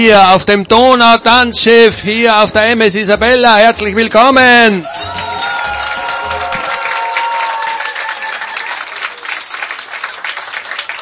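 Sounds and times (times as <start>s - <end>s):
speech: 0.0s - 5.0s
voices cheering: 4.7s - 11.0s
audience applause on a dance ship: 4.8s - 11.0s.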